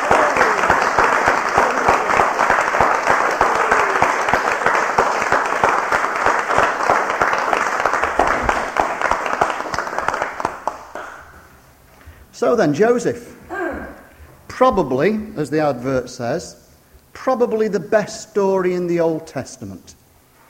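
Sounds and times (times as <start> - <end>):
audience applause: 0.0 - 11.5
speech: 12.4 - 13.3, 14.6 - 16.6, 17.2 - 20.0.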